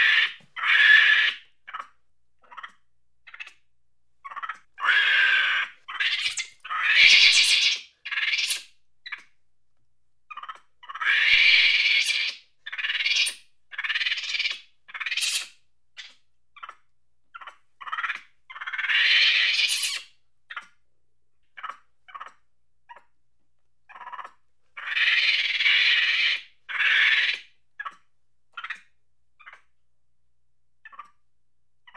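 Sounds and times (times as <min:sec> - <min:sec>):
monkey chattering angrily: 0:00.0 - 0:03.6, 0:04.2 - 0:09.2, 0:10.3 - 0:16.8, 0:17.4 - 0:20.8, 0:21.6 - 0:23.0, 0:23.9 - 0:28.0, 0:28.6 - 0:28.8, 0:30.8 - 0:31.2.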